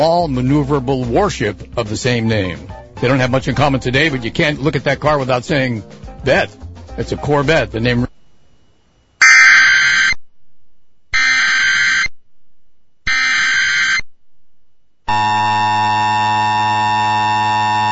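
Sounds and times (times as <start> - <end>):
speech: 0.0 - 8.1
Amber Alert emergency broadcast alert tone: 9.2 - 10.2, 11.2 - 12.1, 13.1 - 14.1, 15.1 - 17.8.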